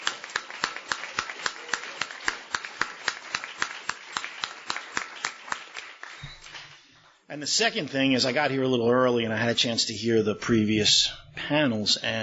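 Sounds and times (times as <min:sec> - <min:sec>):
round of applause: 0:00.0 - 0:07.2
speech: 0:07.3 - 0:12.2.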